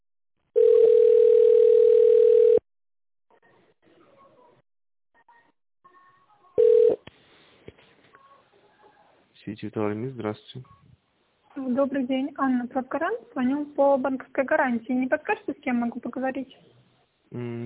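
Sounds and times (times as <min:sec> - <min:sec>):
steady phone tone: 0:00.6 - 0:02.6, 0:06.6 - 0:07.0
speech: 0:09.5 - 0:10.8, 0:11.7 - 0:17.6.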